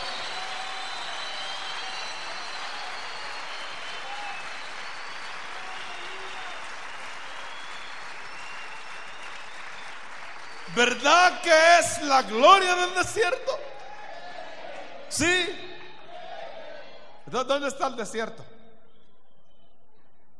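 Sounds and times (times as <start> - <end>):
audience applause: 0.0 - 16.0
faint voices and cheers: 0.0 - 18.4
speech: 10.8 - 13.6, 15.1 - 15.6, 17.3 - 18.5.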